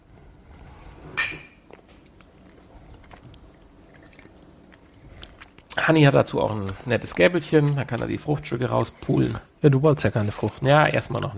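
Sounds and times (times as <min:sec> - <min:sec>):
glasses clinking in a toast over a kitchen pot of fruit punch: 0:01.2 - 0:01.6
speech: 0:05.8 - 0:11.3.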